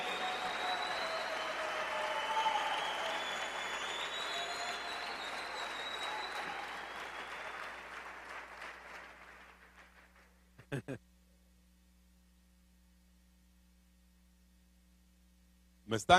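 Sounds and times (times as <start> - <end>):
audience applause: 0.0 - 10.3.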